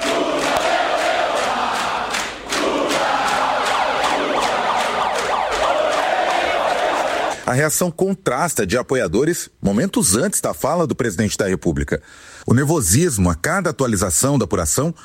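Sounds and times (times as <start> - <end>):
crowd of supporters shouting and cheering: 0.0 - 7.4
sharp percussive bursts: 0.0 - 7.4
rising wails: 2.5 - 7.4
speech: 7.5 - 15.0.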